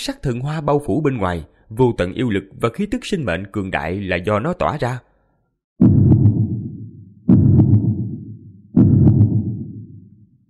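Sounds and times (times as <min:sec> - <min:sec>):
speech: 0:00.0 - 0:05.1
deep booming heartbeat thumps: 0:05.8 - 0:10.3.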